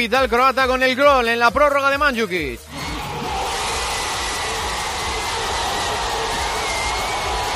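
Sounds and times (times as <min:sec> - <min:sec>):
speech: 0:00.0 - 0:02.7
crowd celebrating in main square of Zagreb: 0:02.6 - 0:07.5.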